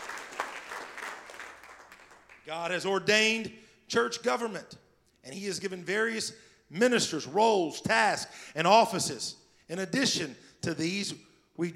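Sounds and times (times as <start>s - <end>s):
audience clapping hands: 0.0s - 2.6s
speech: 2.5s - 11.7s.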